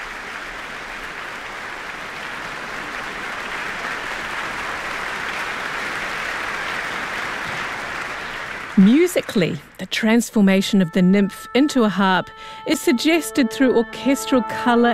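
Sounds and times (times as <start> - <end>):
concert audience applauding the concertmaster: 0.0 - 10.6
speech: 8.8 - 14.9.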